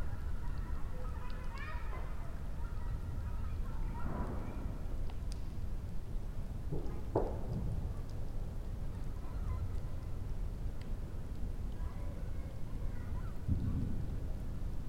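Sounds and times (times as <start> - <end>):
child: 0.0 - 4.9, 8.8 - 10.2, 11.6 - 14.1
campfire crackling: 0.0 - 14.8
raindrops: 0.0 - 14.8.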